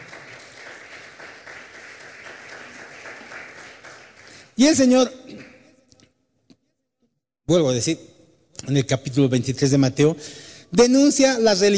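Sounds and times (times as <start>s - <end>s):
applause: 0.0s - 5.6s
speech: 4.6s - 5.2s, 7.5s - 8.1s, 8.7s - 11.7s.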